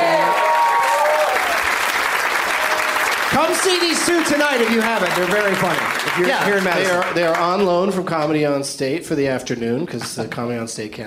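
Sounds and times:
audience applause: 0.0 - 7.9
speech: 3.4 - 11.0.

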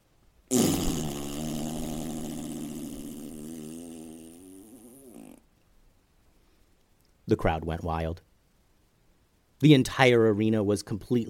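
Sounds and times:
loud fart from a bull: 0.5 - 5.5
speech: 7.3 - 8.3, 9.6 - 11.2.

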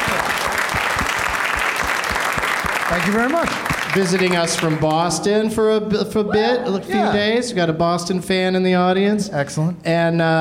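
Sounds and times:
audience applauding a guest: 0.0 - 5.1
speech: 2.9 - 10.4.

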